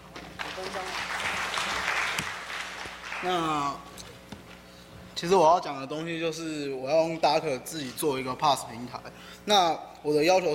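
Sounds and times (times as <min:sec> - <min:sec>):
audience applause: 0:00.4 - 0:03.7
speech: 0:03.2 - 0:03.9, 0:05.2 - 0:10.5.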